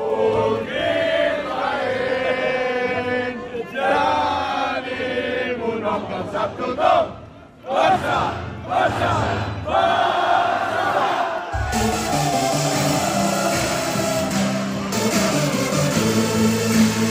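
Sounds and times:
nightclub crowd in Barcelona singing a football club anthem: 0:00.0 - 0:16.2
nightclub crowd shouting: 0:07.7 - 0:16.2.

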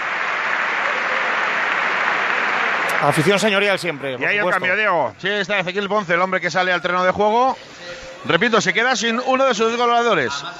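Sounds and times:
stadium crowd applause: 0:00.0 - 0:04.9
speech: 0:03.0 - 0:10.5.

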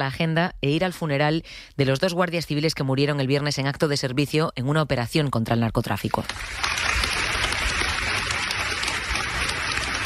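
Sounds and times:
speech: 0:00.0 - 0:07.2
applause at a funeral: 0:06.2 - 0:10.0.

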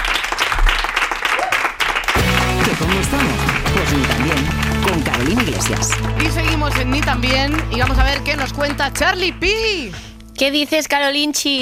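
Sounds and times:
studio audience applause: 0:00.0 - 0:09.4
speech: 0:02.8 - 0:11.6.

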